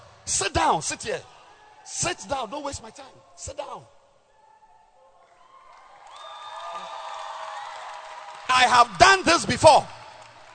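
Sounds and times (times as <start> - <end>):
speech: 0.3 - 4.0, 8.6 - 10.0
audience hand clapping: 5.7 - 10.5.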